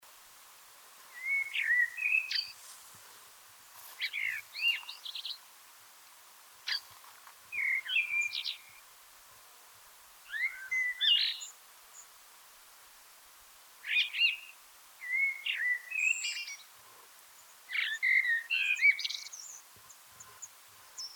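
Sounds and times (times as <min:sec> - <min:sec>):
Eurasian blackbird song: 0:01.1 - 0:02.6, 0:04.0 - 0:05.4, 0:07.5 - 0:08.8, 0:10.3 - 0:11.5, 0:13.9 - 0:16.6, 0:17.7 - 0:21.1.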